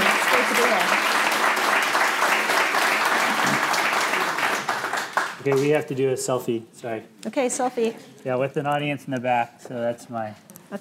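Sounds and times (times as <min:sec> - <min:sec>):
audience applause welcoming a guest to the stage: 0:00.0 - 0:05.8
speech: 0:05.4 - 0:10.7.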